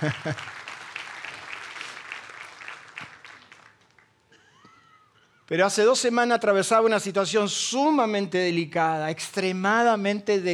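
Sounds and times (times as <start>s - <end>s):
laughter: 0.0s - 0.5s
speech: 0.0s - 0.6s, 5.5s - 10.5s
audience applause: 0.0s - 4.1s.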